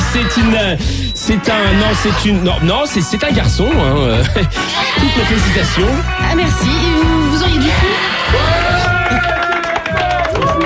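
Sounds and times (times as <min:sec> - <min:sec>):
speech: 0:00.1 - 0:09.3
crowd voices and cheering: 0:07.8 - 0:10.6
audience applause: 0:08.0 - 0:10.6.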